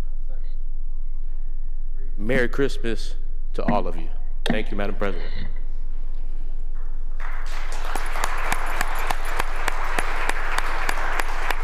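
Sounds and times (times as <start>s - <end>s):
speech: 2.2s - 5.6s
applause in a state Senate chamber: 7.2s - 11.6s.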